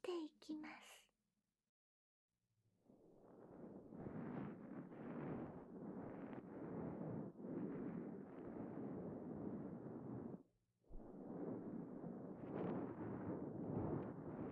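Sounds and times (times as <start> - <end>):
head and shoulder massage ASMR: 3.0 - 14.4.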